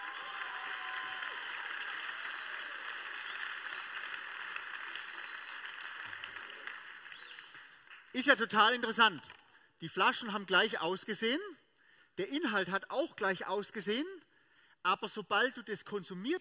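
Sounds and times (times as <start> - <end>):
audience applause: 0.0 - 8.1
speech: 8.2 - 11.6, 12.2 - 14.2, 14.8 - 16.3.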